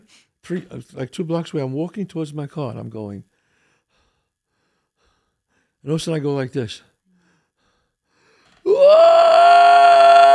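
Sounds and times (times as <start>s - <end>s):
speech: 0.1s - 3.3s, 5.8s - 6.9s
man screaming imitating a gut cry: 8.7s - 10.3s.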